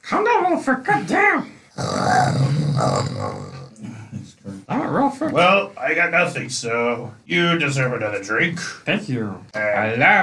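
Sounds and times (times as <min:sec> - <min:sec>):
speech: 0:00.1 - 0:03.5, 0:04.1 - 0:10.2
voice imitating a growl: 0:01.8 - 0:04.0.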